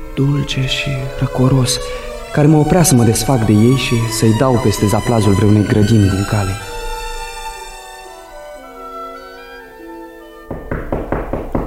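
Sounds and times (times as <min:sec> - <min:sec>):
speech: 0:00.2 - 0:06.7
firm knocking: 0:10.5 - 0:11.6.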